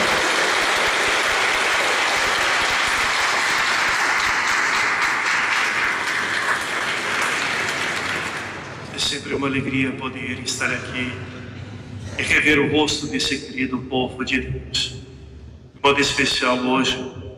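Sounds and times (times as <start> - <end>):
audience applauding: 0.0 - 8.9
speech: 9.4 - 11.4, 12.2 - 14.9, 15.8 - 17.2.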